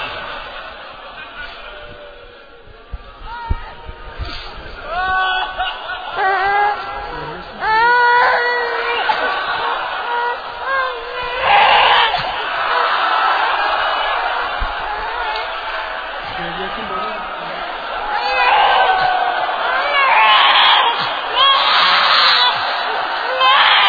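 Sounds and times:
laughter: 0.0s - 3.2s, 3.8s - 20.1s
low murmur: 0.0s - 20.3s
baby crying: 4.9s - 13.0s, 14.8s - 23.8s.

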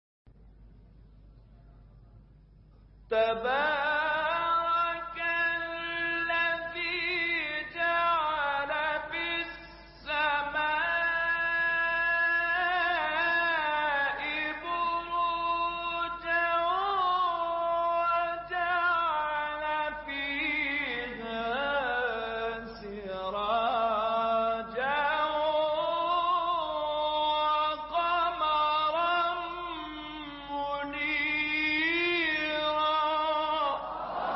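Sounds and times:
recitation of a scripture verse: 3.1s - 34.2s.

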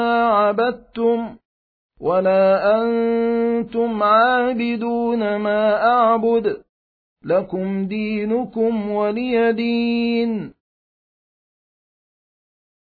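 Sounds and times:
Quran recitation: 0.0s - 1.4s, 2.0s - 10.6s.

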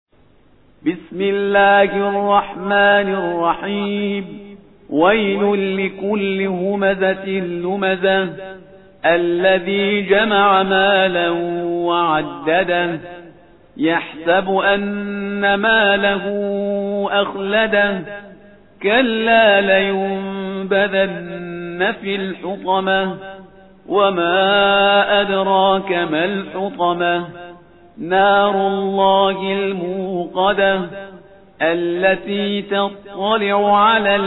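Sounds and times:
Quran recitation: 0.8s - 34.2s.

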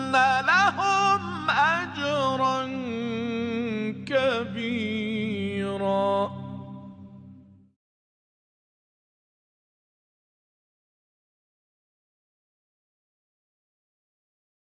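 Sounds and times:
Quran recitation of a verse: 0.0s - 7.4s.

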